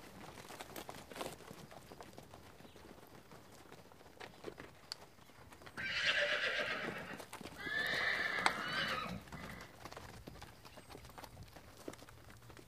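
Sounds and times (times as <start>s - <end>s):
horse whinnying: 5.8s - 9.7s.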